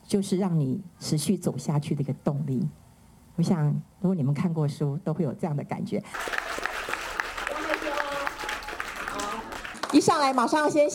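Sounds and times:
speech: 0:00.1 - 0:02.8, 0:03.4 - 0:06.4, 0:09.9 - 0:10.9
audience applause: 0:06.1 - 0:10.1.

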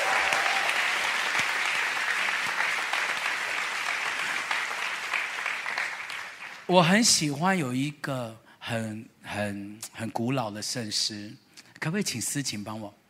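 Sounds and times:
audience clapping hands: 0:00.0 - 0:06.9
speech: 0:06.7 - 0:13.0.

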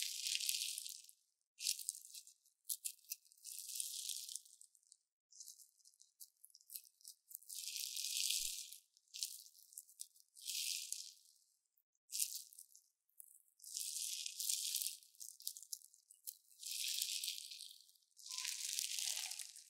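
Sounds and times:
crunchy slime squeezed and pressed, crackling: 0:00.0 - 0:11.4, 0:12.1 - 0:19.6
faint squelch: 0:18.2 - 0:19.6.

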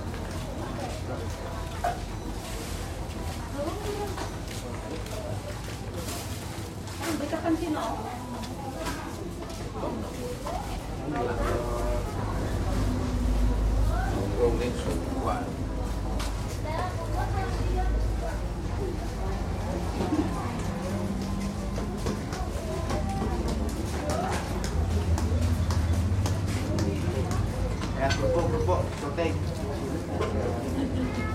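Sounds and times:
overlapping voices chattering in a village in East Java: 0:00.0 - 0:31.3
low rumble of passing engines: 0:10.8 - 0:31.3.

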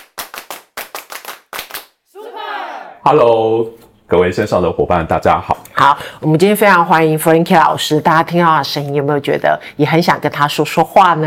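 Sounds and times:
sharp hand claps in a patterned rhythm: 0:00.0 - 0:02.0
loud sustained voiced shout of a cheer: 0:02.1 - 0:03.0
speech: 0:03.0 - 0:11.2.

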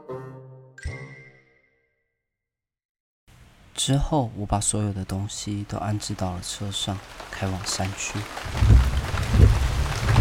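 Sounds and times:
speech: 0:03.8 - 0:09.5
heavy rain beating on car windows: 0:05.2 - 0:10.1.

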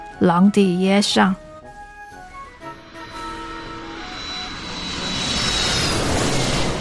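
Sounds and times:
speech: 0:00.2 - 0:01.4
airplane flying: 0:01.7 - 0:06.7.

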